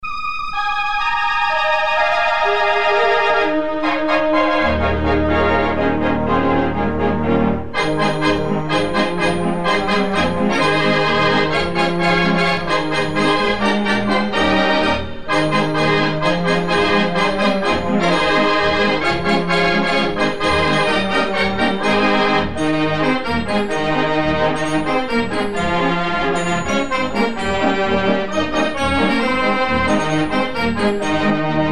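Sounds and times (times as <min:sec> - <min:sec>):
Christmas song: 0:00.0 - 0:31.6.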